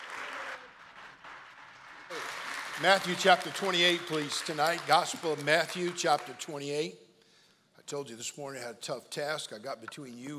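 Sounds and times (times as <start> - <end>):
church congregation clapping to welcome a visiting preacher at an anniversary service: 0.0 - 6.9
speech: 2.8 - 7.0, 7.9 - 10.3.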